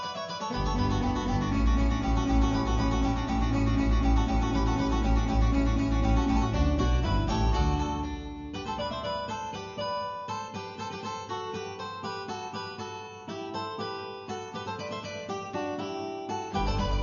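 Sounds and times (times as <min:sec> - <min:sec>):
mandolin ensemble: 0:00.0 - 0:11.0, 0:14.5 - 0:17.0.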